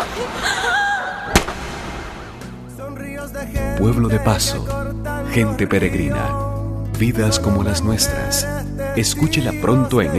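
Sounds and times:
laughter: 0:00.0 - 0:01.3
speech: 0:00.2 - 0:00.6, 0:03.3 - 0:06.4, 0:07.0 - 0:10.1
single sharp gunshot: 0:01.3 - 0:02.6.

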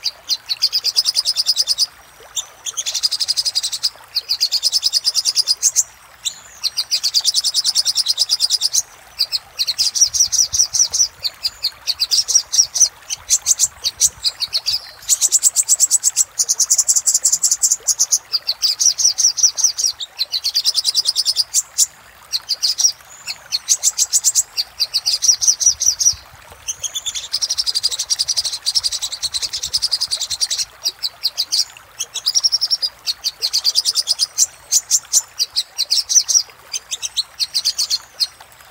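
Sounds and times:
little spiderhunter song: 0:00.0 - 0:38.7.

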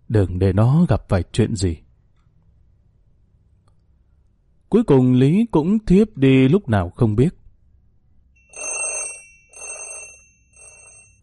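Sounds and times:
speech: 0:00.1 - 0:01.8, 0:04.7 - 0:07.4
alarm clock ringing: 0:08.4 - 0:11.2.

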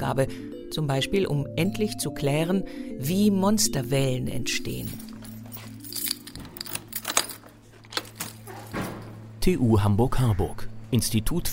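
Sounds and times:
speech: 0:00.1 - 0:05.1, 0:09.4 - 0:11.5
key rattling and turning in a door lock: 0:04.9 - 0:09.3.

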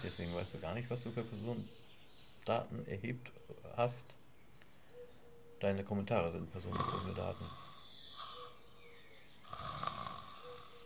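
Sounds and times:
speech: 0:00.0 - 0:04.2, 0:05.6 - 0:07.6
rough rasping snore: 0:06.7 - 0:07.8, 0:09.5 - 0:10.8.

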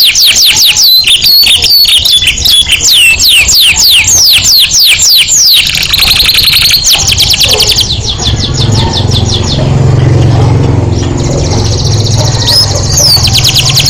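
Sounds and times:
canary trilling: 0:00.0 - 0:13.8.

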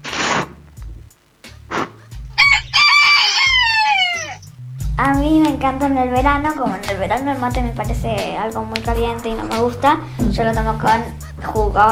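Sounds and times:
rooster crowing: 0:02.4 - 0:04.6
speech: 0:05.0 - 0:11.9.

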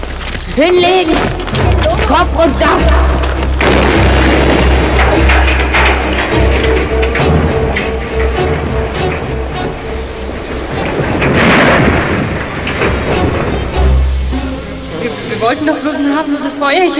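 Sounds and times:
crackling debris: 0:00.0 - 0:16.9
speech: 0:00.5 - 0:03.2, 0:15.4 - 0:16.9
dynamite explosion in a shed: 0:01.5 - 0:15.6.

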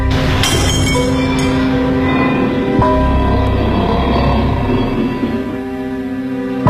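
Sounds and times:
sustained ringing tone: 0:00.1 - 0:06.6
lidded porcelain teacup dropping and shattering indoors: 0:00.3 - 0:01.5.

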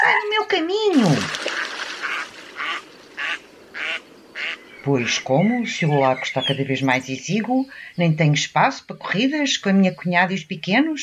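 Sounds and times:
speech: 0:00.2 - 0:01.6, 0:04.8 - 0:11.0
soft hiss: 0:00.5 - 0:08.2
duck quacking: 0:01.6 - 0:04.6.

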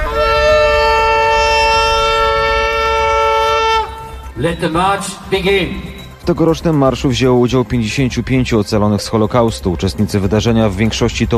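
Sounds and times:
shofar, ram's horn, blowing a long blast: 0:00.0 - 0:04.6
speech: 0:04.4 - 0:11.3.

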